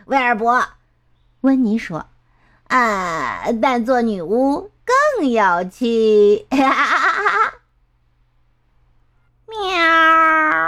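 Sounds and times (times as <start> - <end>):
speech: 0.1 - 0.8, 1.4 - 2.1, 2.7 - 7.5
cat meowing: 9.5 - 10.6.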